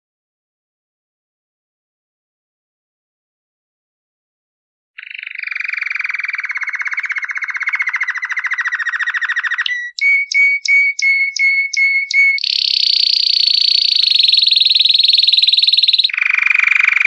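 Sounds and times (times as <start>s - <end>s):
canary song in rapid rolling tours: 5.0s - 17.0s.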